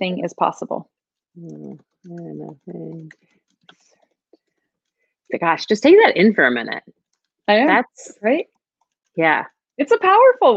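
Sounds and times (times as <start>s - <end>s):
speech: 0.0s - 3.9s, 5.3s - 8.5s, 9.2s - 10.5s
typing on a computer keyboard: 1.4s - 6.1s, 6.9s - 10.2s.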